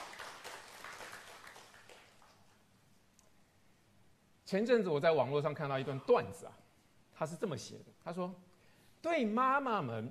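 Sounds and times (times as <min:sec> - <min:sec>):
audience applause: 0:00.0 - 0:02.5
speech: 0:04.5 - 0:10.0.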